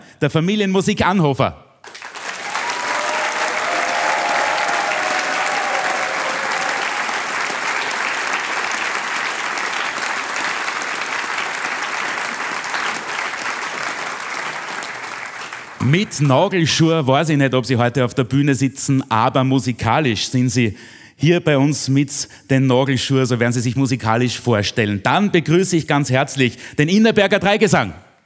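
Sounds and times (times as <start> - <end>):
speech: 0.2 - 1.7, 15.9 - 28.1
audience applause at a folk singers' and musicians' gathering: 1.8 - 15.8.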